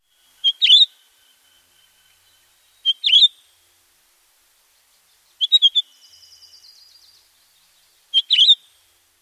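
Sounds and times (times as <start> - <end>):
calls: 0.3 - 3.6, 5.3 - 6.7, 8.1 - 8.8.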